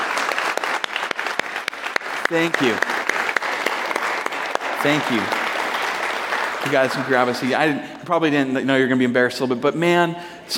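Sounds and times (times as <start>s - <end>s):
audience clapping: 0.0s - 7.8s
speech: 2.3s - 2.9s, 4.8s - 5.4s, 6.6s - 10.5s.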